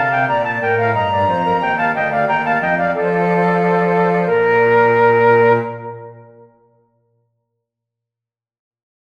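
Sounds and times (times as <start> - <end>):
chorus of flutes: 0.0 - 6.8.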